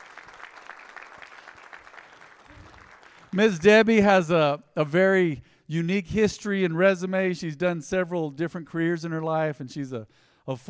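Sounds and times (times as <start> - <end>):
audience clapping: 0.0 - 3.7
speech: 3.3 - 10.6.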